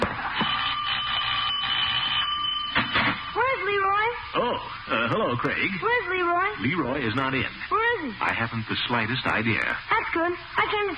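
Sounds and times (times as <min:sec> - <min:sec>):
doorbell ringing: 0:00.4 - 0:04.0
speech: 0:04.5 - 0:10.9.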